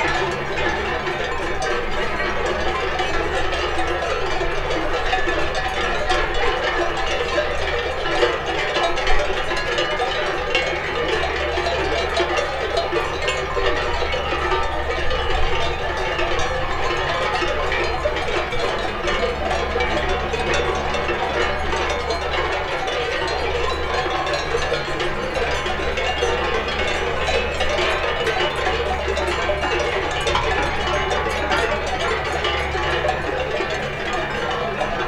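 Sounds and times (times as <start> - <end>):
cowbells: 0.0 - 35.0.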